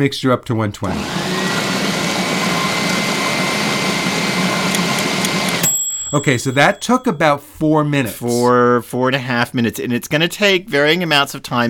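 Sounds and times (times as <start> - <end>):
speech: 0.0 - 1.4, 6.1 - 11.6
high-power blender running: 0.8 - 5.6.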